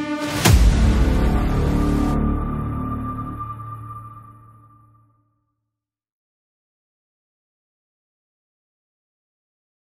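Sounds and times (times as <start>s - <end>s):
epic cinematic intro music: 0.0s - 5.1s.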